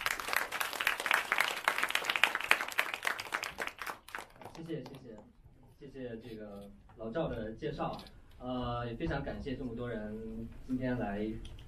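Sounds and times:
audience applause: 0:00.0 - 0:04.6
speech: 0:04.6 - 0:11.6.

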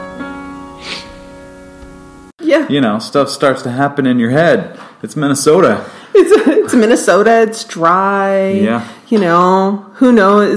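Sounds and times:
person sniffling at start of song: 0:00.8 - 0:01.2
speech: 0:02.6 - 0:10.5.

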